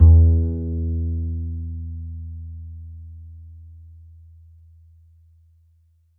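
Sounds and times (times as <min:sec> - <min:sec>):
upright acoustic bass A string note: 0:00.0 - 0:01.9.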